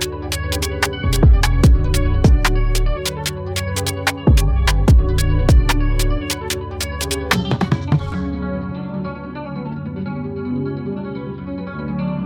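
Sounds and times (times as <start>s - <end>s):
drill beat: 0.0s - 8.2s.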